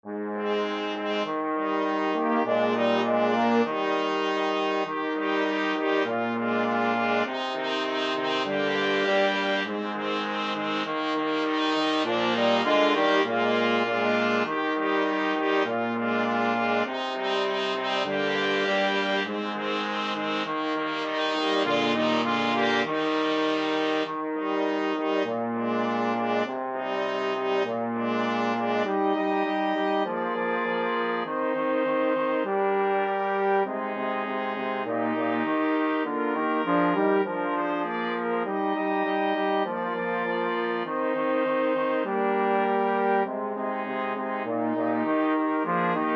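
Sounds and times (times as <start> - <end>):
brass quartet playing: 0.0 - 46.1.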